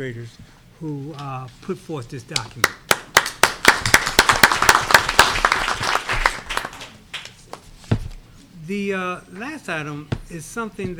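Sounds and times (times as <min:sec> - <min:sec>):
speech: 0:00.0 - 0:02.8, 0:08.7 - 0:10.9
audience clapping: 0:02.5 - 0:07.7.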